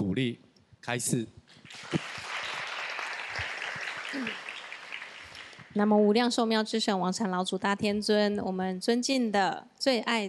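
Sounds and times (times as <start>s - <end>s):
speech: 0.2s - 2.1s, 4.1s - 4.4s, 5.8s - 10.2s
crowd applauding: 1.6s - 5.8s.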